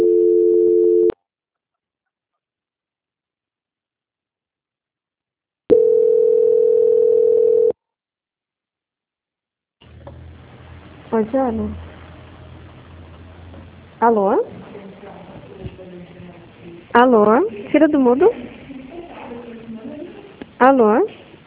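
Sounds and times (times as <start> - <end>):
telephone line tone while a call is transferred: 0.0 - 1.2, 5.7 - 7.8
burst of low noise: 9.8 - 16.9
speech: 11.2 - 11.9, 14.0 - 14.6, 17.0 - 18.5, 20.6 - 21.2.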